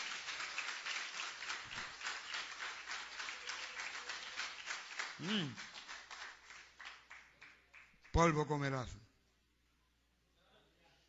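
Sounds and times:
loud applause from audience: 0.0s - 7.9s
speech: 5.2s - 5.7s, 8.2s - 9.0s.

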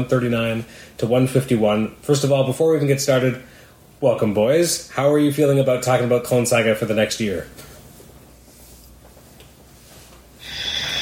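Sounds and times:
speech: 0.0s - 7.7s
long deep inhale: 10.4s - 10.9s.

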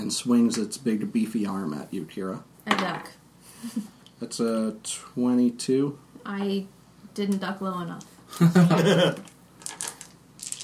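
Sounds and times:
speech: 0.1s - 9.3s
many dice rolling: 9.6s - 10.6s.

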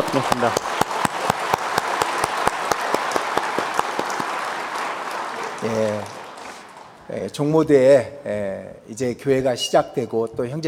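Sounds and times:
audience applause: 0.0s - 7.1s
speech: 0.1s - 0.7s, 5.6s - 6.2s, 7.1s - 10.6s.

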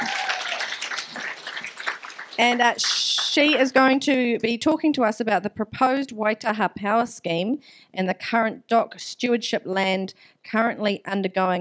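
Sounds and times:
audience round of applause: 0.0s - 3.7s
speech: 2.4s - 11.6s.

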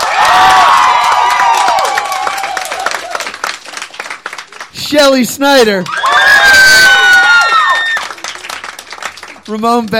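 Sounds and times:
people whooping and shouting: 0.0s - 3.4s, 5.8s - 8.4s
audience clapping: 0.0s - 9.9s
speech: 4.9s - 6.2s, 9.5s - 9.9s.

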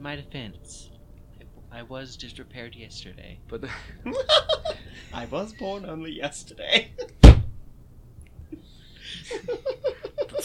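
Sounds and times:
speech: 0.0s - 0.9s, 1.7s - 7.2s, 8.5s - 10.4s
laughter: 3.6s - 5.3s, 8.5s - 10.4s
aggressive slap: 7.2s - 7.6s.

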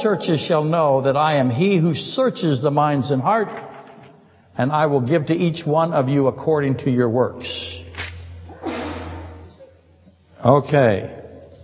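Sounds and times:
speech: 0.0s - 3.7s, 4.6s - 7.8s, 10.4s - 11.2s
sneeze: 8.1s - 9.8s.

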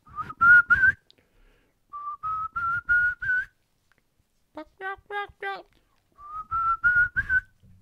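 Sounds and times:
person whistling an imitation of a turkey kee-kee call: 0.0s - 1.1s, 2.0s - 3.5s, 6.2s - 7.6s.

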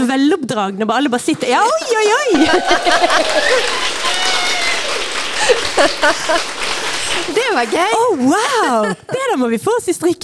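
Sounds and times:
speech: 0.0s - 4.5s, 5.4s - 10.2s
laughter: 1.6s - 9.4s
live audience cheering and applause: 1.8s - 8.9s.

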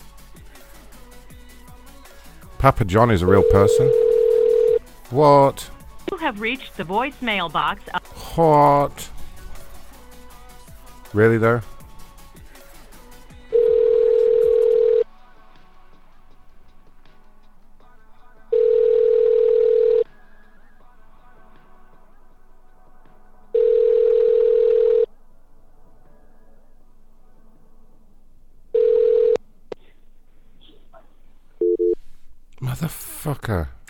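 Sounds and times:
speech: 2.6s - 4.0s, 5.1s - 9.1s, 11.1s - 11.7s
ringback tone of an outgoing telephone call: 3.3s - 4.8s, 13.5s - 15.1s, 18.5s - 20.1s, 23.6s - 25.1s, 28.8s - 29.4s, 31.6s - 32.0s.

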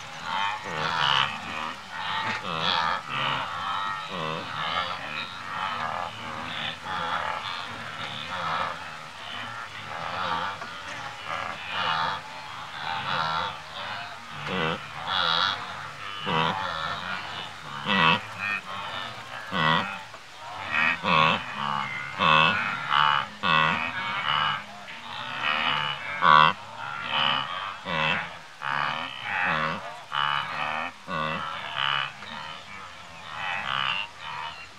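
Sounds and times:
birds chattering: 0.0s - 27.5s
insects chattering: 0.0s - 34.7s
several wildebeest grazing and grunting in Masai Mara National Park Kenya: 0.0s - 34.7s.

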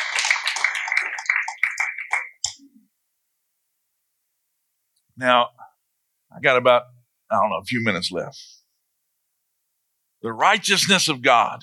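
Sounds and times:
audience clapping hands: 0.0s - 2.6s
speech: 5.2s - 5.6s, 6.3s - 8.6s, 10.2s - 11.6s.

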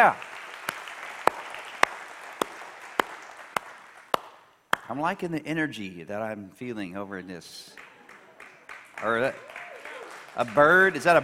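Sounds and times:
speech: 0.0s - 0.3s, 4.9s - 7.9s, 9.0s - 9.5s, 10.4s - 11.2s
audience applauding: 0.0s - 4.4s, 7.7s - 11.2s.

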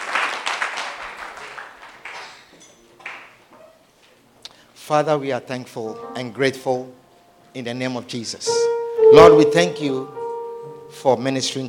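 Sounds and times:
church congregation applauding as they stand: 0.0s - 3.4s
speech: 4.9s - 7.0s, 7.6s - 10.2s, 10.9s - 11.6s.

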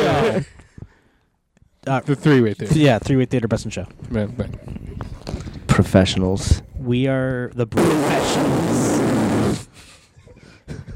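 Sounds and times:
speech: 0.4s - 0.6s, 1.8s - 5.2s, 5.8s - 8.9s, 10.7s - 10.9s
fart: 7.8s - 9.8s.

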